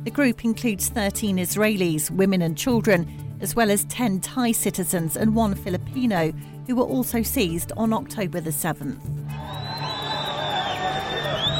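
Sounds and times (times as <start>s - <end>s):
speech: 0.0s - 9.2s
crowd cheering: 9.3s - 11.5s
high whistles: 9.3s - 11.5s
shrill whoops: 9.3s - 11.5s.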